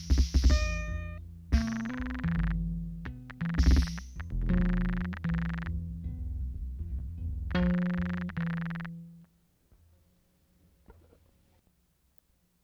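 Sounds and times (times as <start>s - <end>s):
instrumental music: 0.0s - 9.3s.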